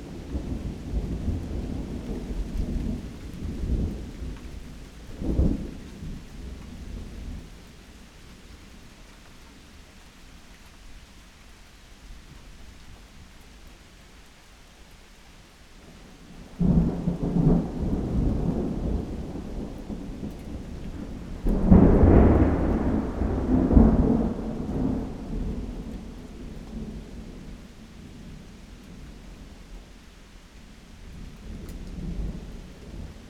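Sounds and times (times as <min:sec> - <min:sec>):
active thunderstorm: 0:00.0 - 0:07.6, 0:16.0 - 0:29.8, 0:31.0 - 0:33.2.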